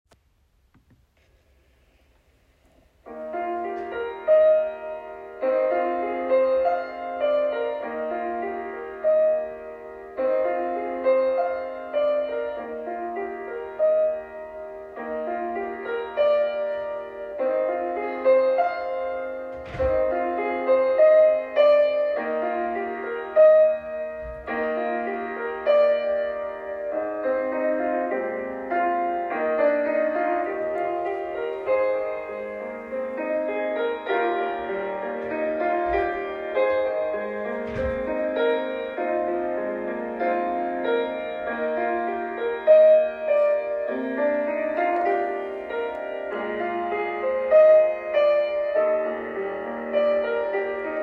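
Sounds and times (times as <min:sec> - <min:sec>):
accompaniment music: 0:03.0 - 0:51.0.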